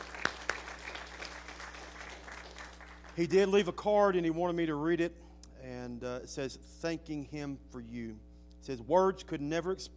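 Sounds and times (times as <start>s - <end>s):
audience applause: 0.0s - 3.2s
speech: 3.2s - 5.2s, 5.9s - 9.9s.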